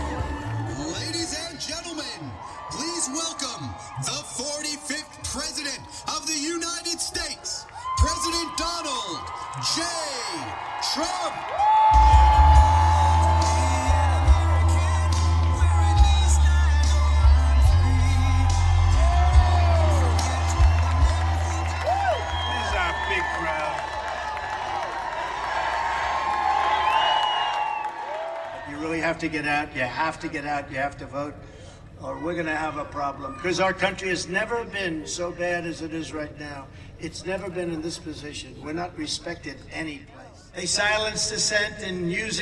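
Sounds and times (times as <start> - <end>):
rally crowd cheering: 0.0 - 29.3
speech: 29.2 - 42.4.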